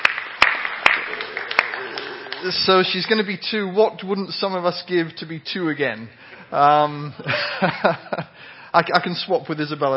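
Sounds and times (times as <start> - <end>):
audience applause: 0.0 - 3.0
speech: 2.4 - 9.9
laughter: 7.2 - 8.4.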